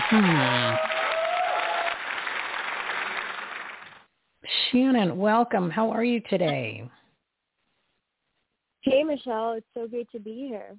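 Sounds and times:
audience applause: 0.0s - 4.1s
speech: 0.1s - 0.9s, 4.7s - 7.0s, 9.0s - 10.7s.

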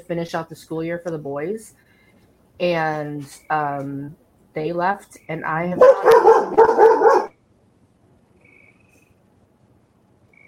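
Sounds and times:
speech: 0.0s - 1.9s, 2.6s - 7.0s
dogs barking: 5.8s - 7.4s.

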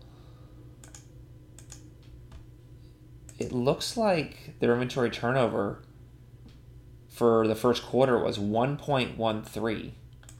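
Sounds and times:
low steady hum: 0.0s - 10.3s
faint keystrokes on a computer keyboard typing a Google search: 0.8s - 1.8s, 10.2s - 10.3s
speech: 3.4s - 5.9s, 7.2s - 10.0s.

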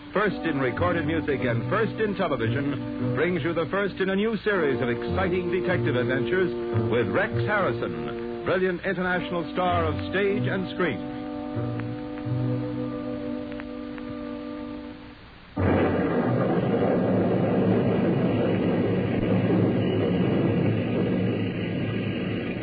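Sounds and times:
thunder roll: 0.0s - 8.6s, 15.6s - 22.6s
torrential rain: 0.0s - 10.0s, 10.9s - 22.6s
held droning musical chord: 0.0s - 17.6s
speech: 0.1s - 11.8s.

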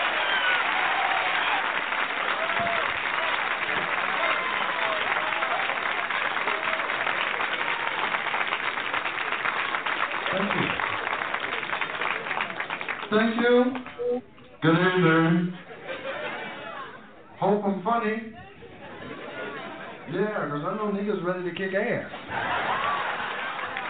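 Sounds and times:
audience applause: 0.0s - 14.0s, 22.2s - 23.8s
laughter: 10.2s - 11.1s, 15.4s - 17.3s, 18.4s - 20.2s, 22.1s - 23.8s
speech: 13.2s - 15.6s, 17.9s - 18.4s, 20.1s - 22.5s.

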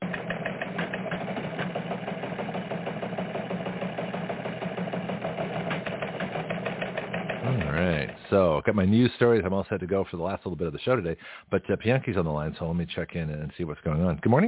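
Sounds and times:
teletype machine printing news: 0.0s - 8.4s
speech: 8.3s - 14.4s.

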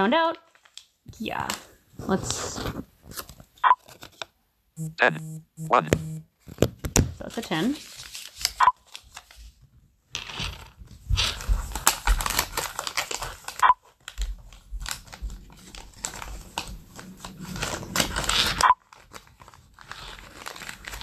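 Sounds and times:
speech: 0.0s - 3.3s, 4.8s - 8.0s
paper money bills crinkling as handled and folded: 7.3s - 9.4s, 10.5s - 21.0s.

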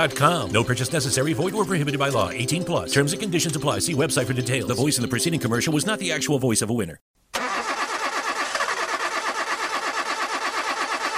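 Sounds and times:
speech: 0.0s - 7.1s
car engine cranking: 7.4s - 11.1s.

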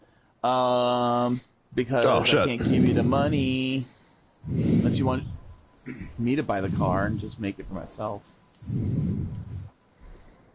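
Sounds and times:
speech: 0.4s - 9.3s
heavy breathing: 2.2s - 7.6s, 8.2s - 10.5s.

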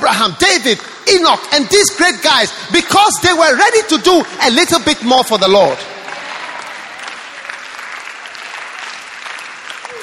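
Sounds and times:
speech: 0.1s - 5.9s
audience clapping: 3.2s - 10.0s.

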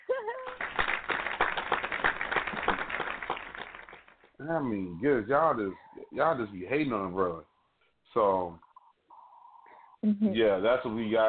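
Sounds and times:
hand clap sound effect: 0.5s - 4.3s
speech: 4.4s - 7.5s, 8.1s - 8.6s, 10.0s - 11.2s.

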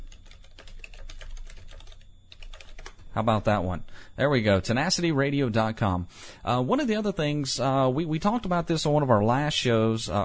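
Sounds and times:
fast typing of a website address on a computer keyboard: 0.0s - 3.0s
speech: 3.2s - 10.2s.

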